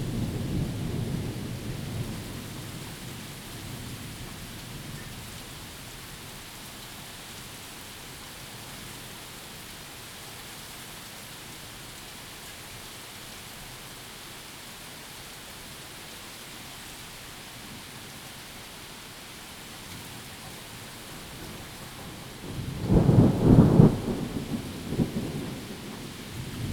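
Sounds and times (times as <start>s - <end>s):
thunderstorm: 0.0s - 5.8s, 20.4s - 26.7s.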